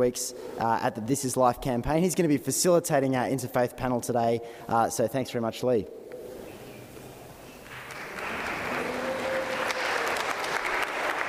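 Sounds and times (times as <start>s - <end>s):
speech: 0.0s - 6.0s
round of applause: 7.6s - 11.2s.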